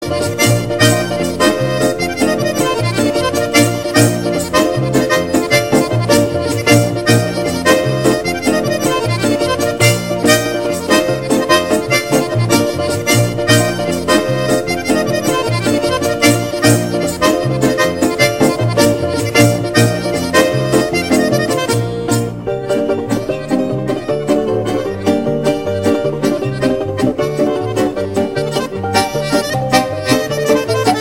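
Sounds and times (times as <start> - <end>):
garmon accordion: 0.0 - 30.9.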